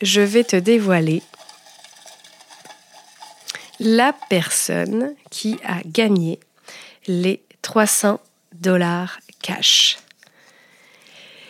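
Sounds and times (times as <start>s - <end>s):
speech: 0.0s - 1.4s, 3.8s - 10.0s
small paper slips rustling in a box: 0.0s - 5.1s.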